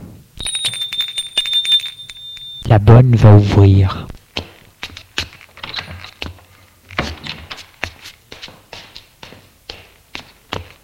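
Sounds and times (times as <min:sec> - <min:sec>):
front doorbell ringing: 0:00.4 - 0:02.8
speech: 0:02.7 - 0:04.2.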